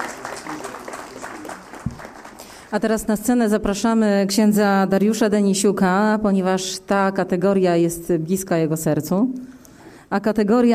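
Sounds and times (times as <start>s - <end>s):
audience applause at an awards ceremony congratulating a priest: 0.0s - 2.7s
speech: 2.7s - 10.7s.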